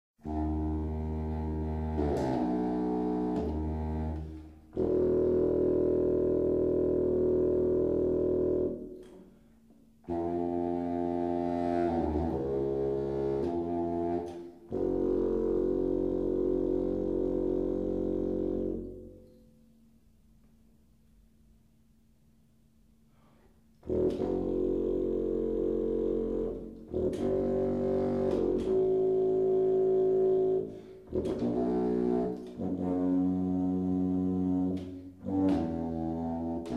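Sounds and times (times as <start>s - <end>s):
contrabassoon: 0.2s - 19.7s, 23.3s - 36.7s.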